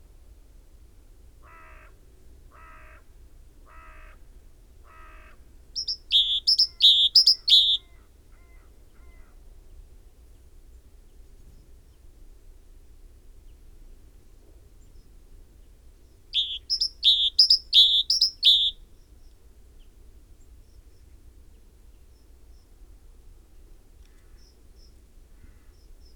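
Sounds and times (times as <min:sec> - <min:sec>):
great tit repeating two-note phrase: 0:05.8 - 0:07.8, 0:16.4 - 0:18.8.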